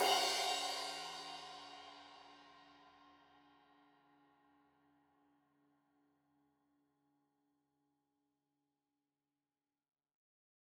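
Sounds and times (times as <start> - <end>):
15 inch crash cymbal edge hit: 0.0 - 2.1.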